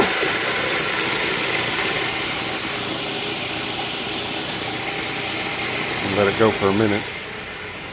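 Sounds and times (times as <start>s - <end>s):
food processor grinding oatmeal: 0.0s - 7.9s
speech: 6.2s - 7.2s.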